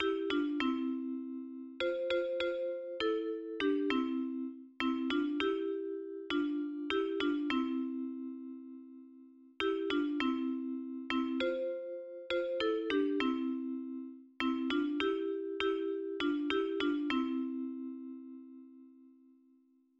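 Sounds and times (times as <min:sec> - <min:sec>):
melody in C major: 0:00.0 - 0:08.9, 0:09.6 - 0:18.7.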